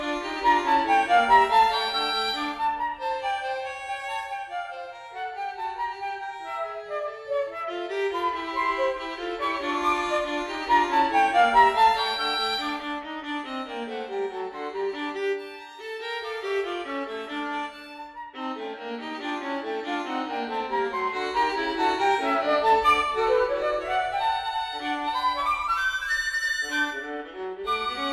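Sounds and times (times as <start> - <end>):
flute playing a serenade: 0.0 - 14.5, 19.3 - 28.1
violin playing a serenade: 0.0 - 28.1.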